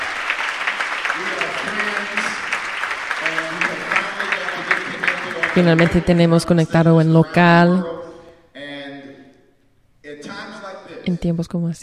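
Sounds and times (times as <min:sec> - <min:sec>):
audience applause: 0:00.0 - 0:06.5
voices and faint shouts of cheering: 0:00.0 - 0:06.8
speech: 0:05.6 - 0:08.0, 0:11.2 - 0:11.8.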